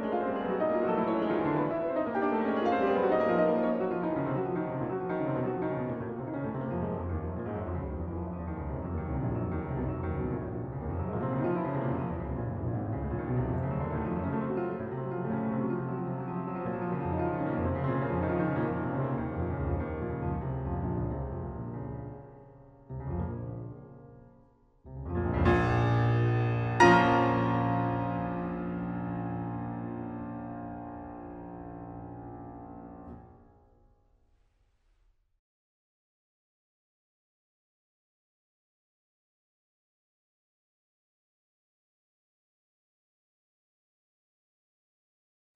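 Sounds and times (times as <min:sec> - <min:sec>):
piano sonata finale presto: 0:00.0 - 0:34.2.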